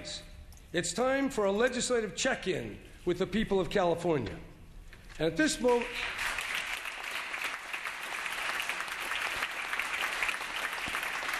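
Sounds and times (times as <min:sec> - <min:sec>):
speech: 0:00.1 - 0:04.5, 0:05.2 - 0:06.2
California legislators applauding during a governor's address: 0:05.6 - 0:11.3.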